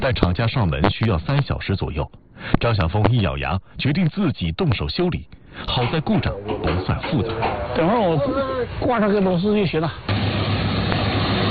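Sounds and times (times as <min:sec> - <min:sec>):
speech: 0:00.0 - 0:10.4
combine harvester engine roaring back to life: 0:06.4 - 0:11.4.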